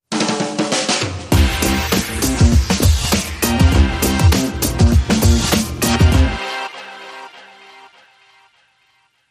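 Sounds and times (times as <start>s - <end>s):
Hammond organ sting: 1.4s - 7.2s.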